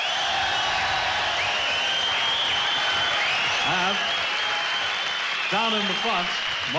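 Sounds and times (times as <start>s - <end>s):
concert audience applause: 0.0s - 6.7s
speech: 5.5s - 6.7s.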